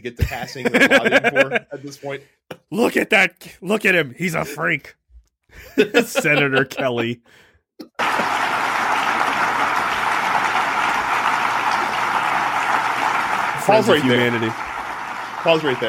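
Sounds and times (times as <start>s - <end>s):
laughter: 0.0s - 2.0s, 5.6s - 7.2s, 7.9s - 14.7s
speech: 0.0s - 8.6s, 13.7s - 14.7s, 15.4s - 15.8s
audience applause: 7.9s - 15.8s.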